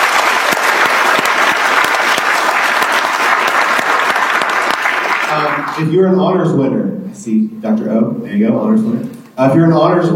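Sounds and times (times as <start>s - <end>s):
audience applause: 0.0s - 5.9s
speech: 5.3s - 10.1s.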